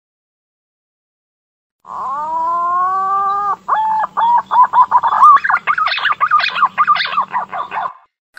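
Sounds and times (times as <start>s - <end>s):
green pigeon whistling: 2.1s - 8.0s.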